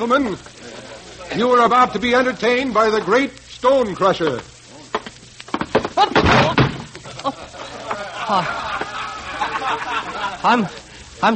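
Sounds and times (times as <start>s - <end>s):
speech: 0.0s - 0.6s, 1.3s - 4.5s, 8.3s - 8.6s, 10.4s - 11.3s
laughter: 0.5s - 2.4s, 6.0s - 11.2s
person stumbling on a stage after catching a toe: 4.9s - 7.0s.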